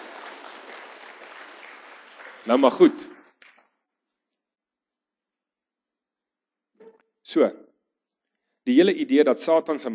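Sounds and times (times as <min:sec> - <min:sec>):
audience applauding: 0:00.0 - 0:03.6
speech: 0:02.4 - 0:03.2, 0:07.3 - 0:07.6, 0:08.7 - 0:09.9.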